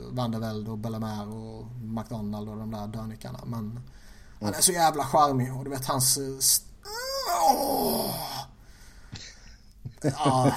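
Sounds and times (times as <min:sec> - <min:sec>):
speech: 0:00.2 - 0:08.5, 0:10.0 - 0:10.5
person moaning groan: 0:06.8 - 0:08.6, 0:10.2 - 0:10.5
laughter: 0:09.8 - 0:10.5.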